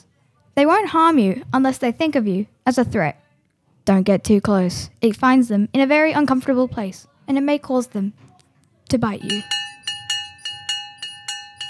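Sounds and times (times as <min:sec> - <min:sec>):
speech: 0:00.6 - 0:03.2, 0:03.9 - 0:08.3, 0:08.9 - 0:09.6
bell ringing: 0:09.2 - 0:11.6.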